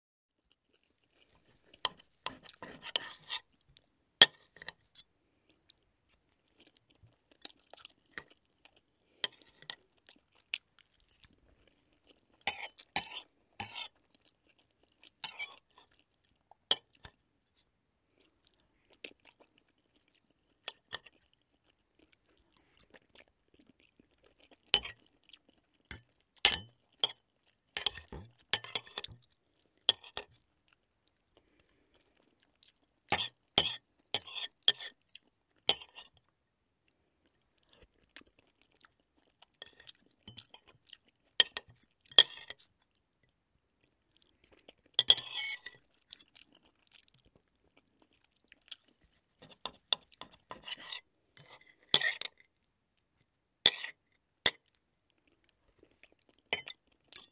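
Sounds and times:
eating with cutlery: 0.8 - 3.6, 7.4 - 16.0, 24.0 - 30.4, 33.1 - 36.2, 38.8 - 42.8, 44.6 - 47.3, 49.4 - 52.4, 53.7 - 54.8, 55.7 - 57.3.

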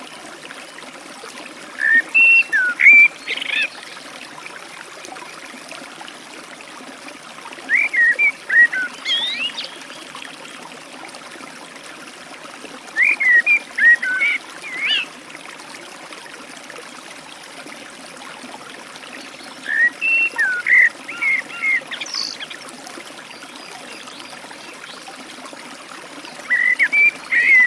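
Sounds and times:
Eurasian blackbird delivering warbled whistles beside a forest stream: 1.8 - 3.8, 7.7 - 9.8, 13.0 - 15.0, 19.6 - 22.6, 26.4 - 27.6.

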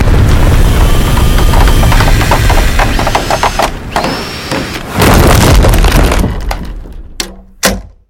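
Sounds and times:
monstrous destructive explosions: 0.0 - 4.0, 4.7 - 7.2.

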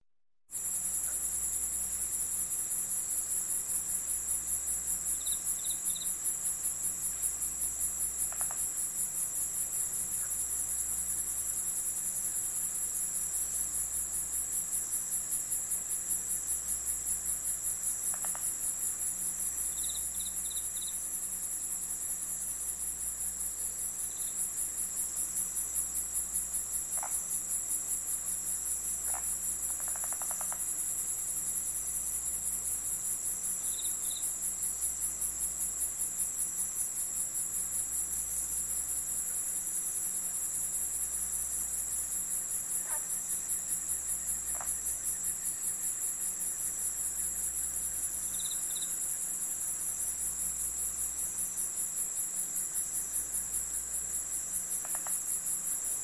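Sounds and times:
cicadas at night: 0.5 - 56.0.

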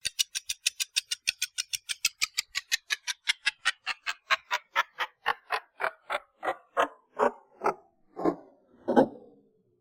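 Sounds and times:
clock ticking slowing down: 0.0 - 7.8.

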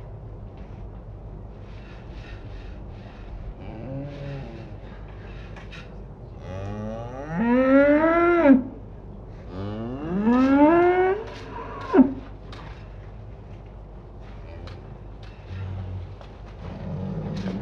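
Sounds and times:
cows on a farm: 3.5 - 13.0, 14.2 - 17.6.

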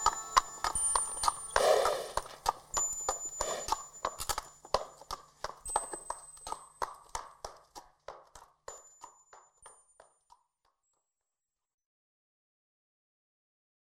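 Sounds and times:
horses galloping: 0.0 - 9.7.

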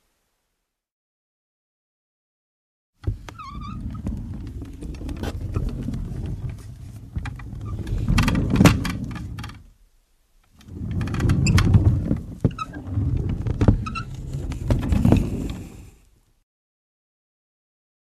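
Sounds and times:
wooden cart or wheelbarrow being pushed, creaking: 3.0 - 9.7, 10.6 - 16.0.

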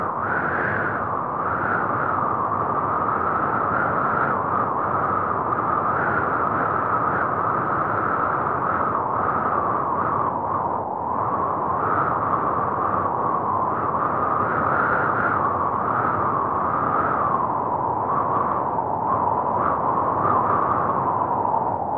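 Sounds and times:
wind in surround 3D sound: 0.0 - 21.9.

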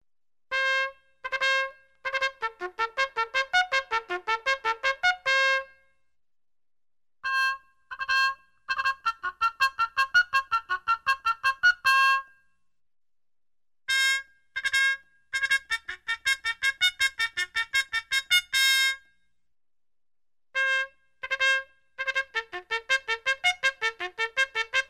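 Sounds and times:
trumpet melody: 0.5 - 5.8, 7.3 - 12.3, 13.9 - 19.0, 20.6 - 24.8.

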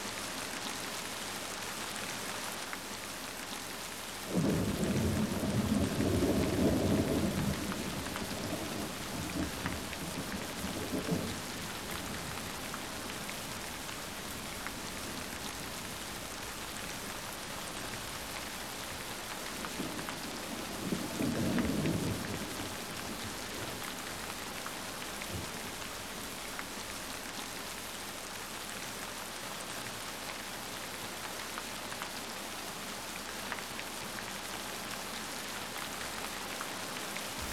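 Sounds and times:
rain in a thunderstorm: 0.0 - 37.5
thunder: 4.3 - 12.1.

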